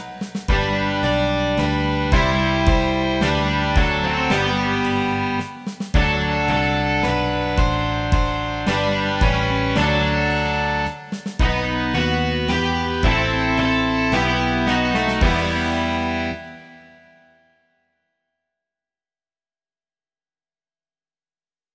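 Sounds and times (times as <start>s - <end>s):
rock music: 0.0s - 16.8s.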